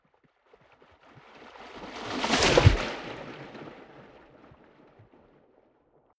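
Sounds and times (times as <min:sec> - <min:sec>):
waves splashing: 0:01.2 - 0:05.0.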